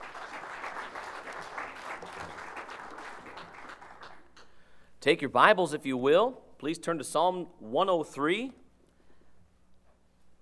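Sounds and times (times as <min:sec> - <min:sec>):
audience applauding: 0:00.0 - 0:04.3
speech: 0:05.0 - 0:08.6.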